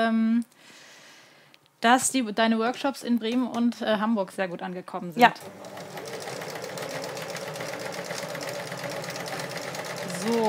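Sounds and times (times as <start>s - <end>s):
speech: 0.0s - 0.7s, 1.8s - 5.8s, 10.2s - 10.4s
sewing machine stitching during a live sewing session: 5.3s - 10.4s.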